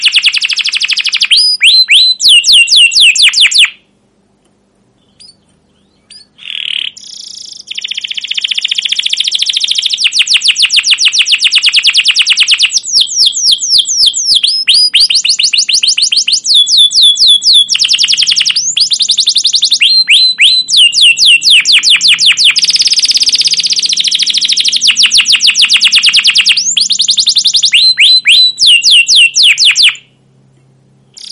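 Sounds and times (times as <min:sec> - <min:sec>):
Atlantic canary chirping trills: 0:00.0 - 0:03.9, 0:04.8 - 0:30.2, 0:31.1 - 0:31.2.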